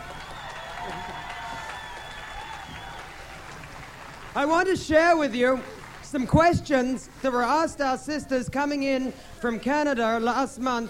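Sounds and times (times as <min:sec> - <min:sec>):
audience applause greeting a guest from Australia: 0:00.0 - 0:06.3
speech: 0:04.4 - 0:10.8.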